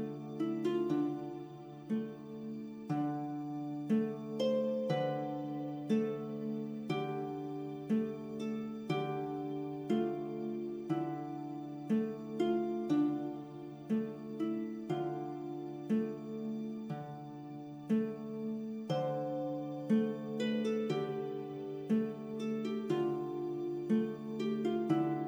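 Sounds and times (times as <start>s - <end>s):
light ambient fantasy RPG music: 0.0s - 25.2s.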